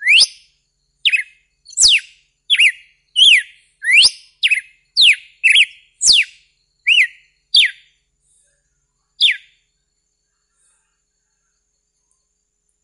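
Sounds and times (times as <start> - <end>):
red-cowled cardinal giving bright whistled notes: 0.0 - 7.9, 9.2 - 9.5.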